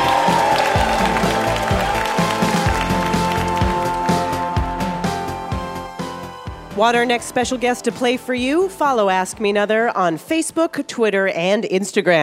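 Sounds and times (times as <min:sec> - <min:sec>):
audience applause for a guest actress: 0:00.0 - 0:06.1
speech: 0:06.8 - 0:12.2.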